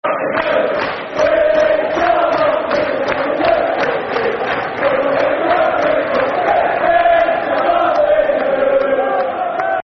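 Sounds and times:
football crowd chanting: 0:00.0 - 0:09.8.

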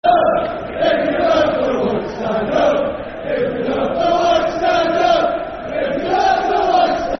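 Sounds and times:
football crowd chanting soccer songs: 0:00.0 - 0:07.1.

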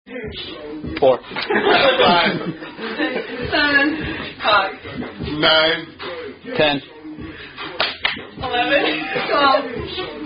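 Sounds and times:
laughter: 0:01.2 - 0:04.4, 0:08.6 - 0:09.9
drinking game hand slaps: 0:07.8 - 0:08.3.

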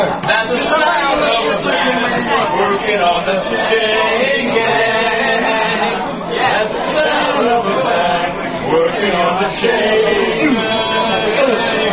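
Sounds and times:
chain gang work song: 0:00.2 - 0:11.9.

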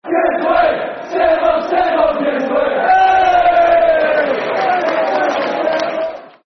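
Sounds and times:
football crowd chant: 0:00.0 - 0:06.4.

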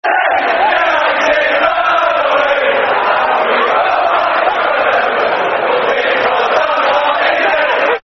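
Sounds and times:
football crowd chanting: 0:00.0 - 0:08.0
laughter: 0:00.1 - 0:08.0.

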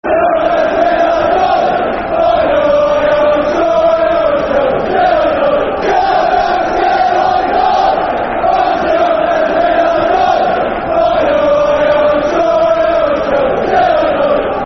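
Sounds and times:
football crowd chanting: 0:00.0 - 0:14.6.

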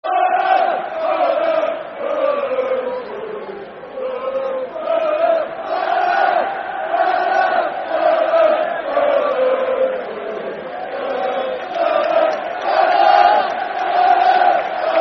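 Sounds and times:
football crowd chanting: 0:00.0 - 0:15.0.

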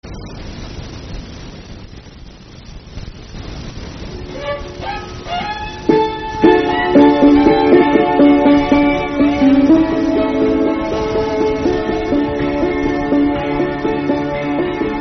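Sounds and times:
polka music: 0:04.2 - 0:15.0.

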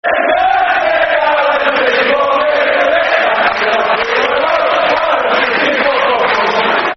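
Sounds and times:
football crowd chanting: 0:00.0 - 0:06.9.

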